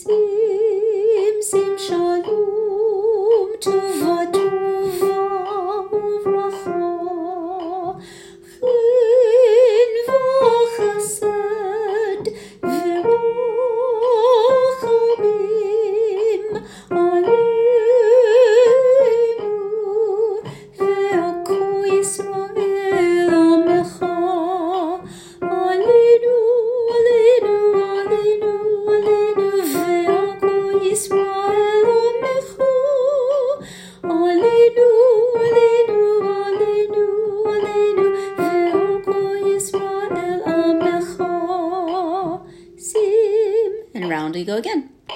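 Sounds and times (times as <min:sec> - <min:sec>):
soprano singing: 0:00.0 - 0:45.1.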